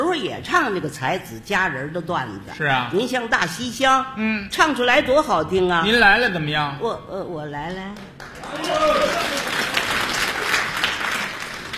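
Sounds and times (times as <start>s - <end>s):
speech: 0.2s - 9.6s
audience clapping: 7.8s - 11.7s.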